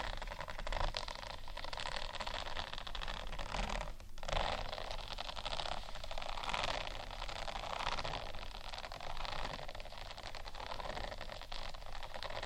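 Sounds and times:
scratching textured sheets: 0:00.0 - 0:12.4.

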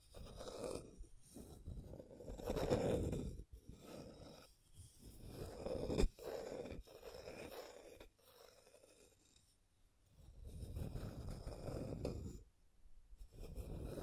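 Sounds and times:
rough rasping scratching and tracing strokes: 0:00.0 - 0:09.5, 0:10.4 - 0:12.4, 0:13.3 - 0:14.0.

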